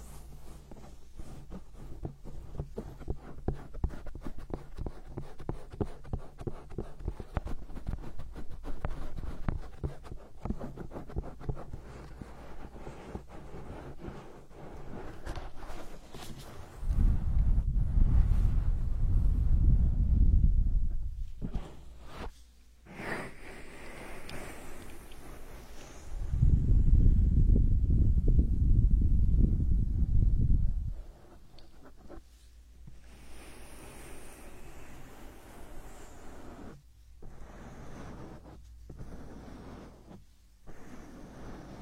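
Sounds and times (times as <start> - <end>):
hand massage skin-on-skin rubbing: 0.0 - 19.0, 21.4 - 26.4, 30.9 - 41.8
loud low rumbling rub: 12.6 - 22.3, 25.4 - 32.1.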